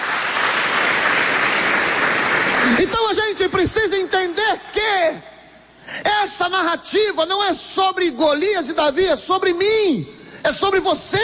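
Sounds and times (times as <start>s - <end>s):
church congregation applauding during a sermon: 0.0s - 4.5s
speech: 2.7s - 4.1s, 6.5s - 11.2s.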